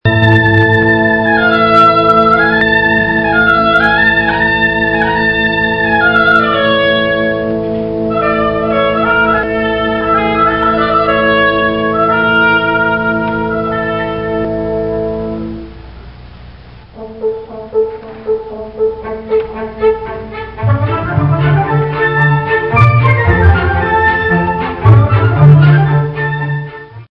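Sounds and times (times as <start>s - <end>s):
oboe: 0.1s - 15.7s, 17.0s - 27.0s.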